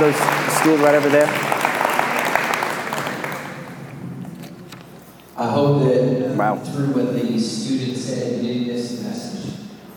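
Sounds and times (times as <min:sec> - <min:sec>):
speech: 0:00.0 - 0:01.5, 0:05.4 - 0:09.4
applause: 0:00.0 - 0:03.9.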